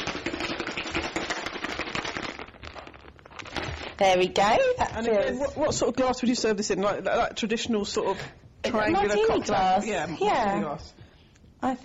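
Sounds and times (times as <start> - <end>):
cocktail shaker shaken with ice: 0.0 - 4.0
speech: 4.0 - 11.0, 11.6 - 11.8.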